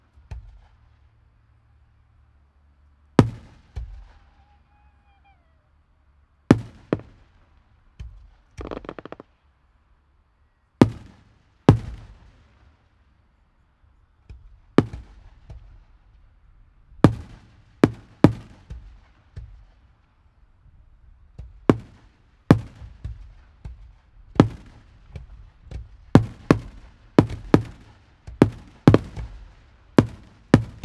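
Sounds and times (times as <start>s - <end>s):
fireworks: 3.2s - 4.9s, 6.5s - 9.4s, 10.8s - 12.9s, 14.4s - 16.2s, 17.0s - 20.0s, 21.3s - 30.8s.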